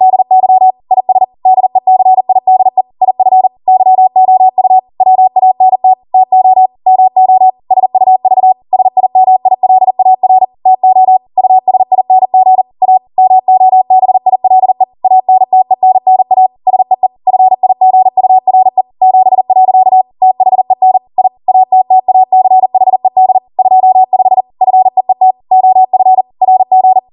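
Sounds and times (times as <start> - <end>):
Morse code practice beeps: 0.0 - 27.1.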